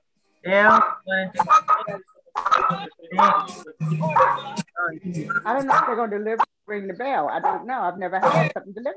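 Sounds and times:
speech: 0.4 - 8.9
dogs barking: 0.6 - 4.7, 5.3 - 6.5, 7.4 - 8.6.

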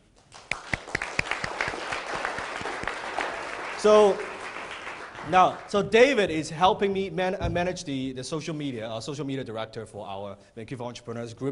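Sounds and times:
audience applause: 0.3 - 5.8
speech: 3.8 - 4.3, 5.3 - 11.5.

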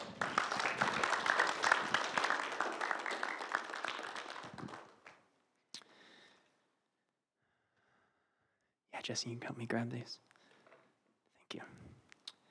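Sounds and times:
audience applause at a church gathering: 0.0 - 5.2
speech: 9.1 - 10.3.

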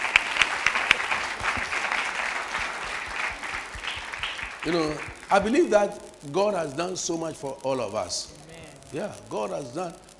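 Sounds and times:
applause: 0.0 - 5.5
speech: 4.6 - 10.1.

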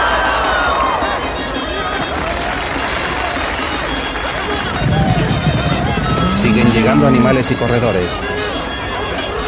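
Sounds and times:
crowd in bullring: 0.0 - 9.4
speech: 6.8 - 8.5.

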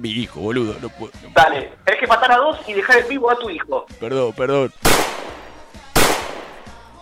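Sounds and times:
speech: 0.0 - 5.1
pistol gunshots in a video game: 4.8 - 6.9.

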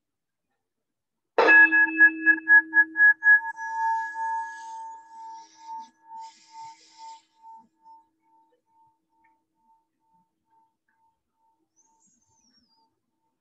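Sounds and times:
meditation bell ringing: 1.4 - 6.8.

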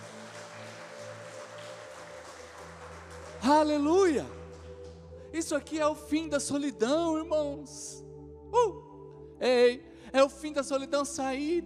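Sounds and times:
applause: 0.0 - 5.8
speech: 3.4 - 4.4, 5.3 - 8.8, 9.4 - 11.6.

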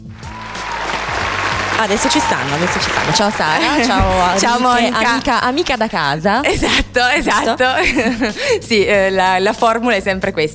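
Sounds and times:
audience applause: 0.0 - 6.0
laughter: 0.2 - 9.1
speech: 1.8 - 10.5.

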